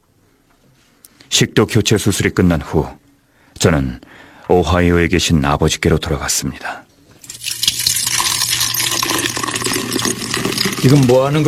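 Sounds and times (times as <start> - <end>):
speech: 1.4 - 3.0, 3.6 - 7.6, 10.8 - 11.4
beer being poured into a feeding tube: 7.2 - 11.4.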